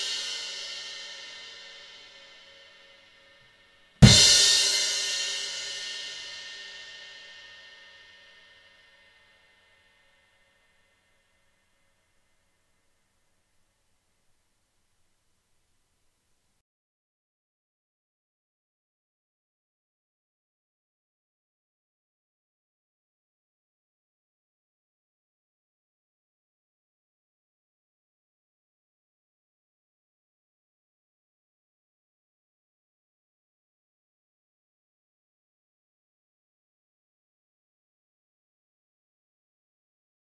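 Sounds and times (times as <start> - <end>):
16-inch rock crash cymbal: 0.0 - 3.3, 4.0 - 9.5.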